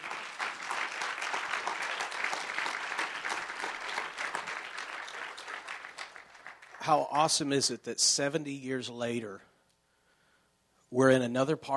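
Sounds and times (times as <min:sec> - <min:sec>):
audience clapping: 0:00.0 - 0:07.5
speech: 0:06.8 - 0:09.5, 0:10.9 - 0:11.7.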